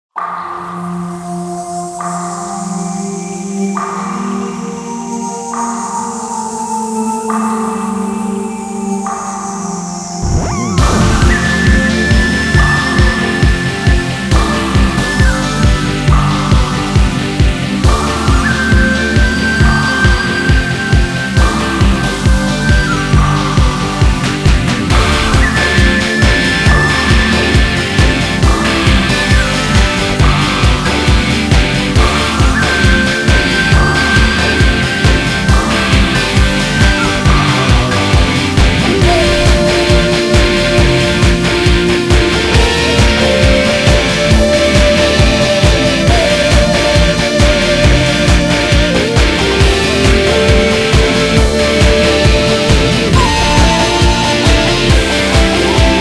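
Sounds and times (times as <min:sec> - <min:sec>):
music: 0:00.0 - 0:55.9.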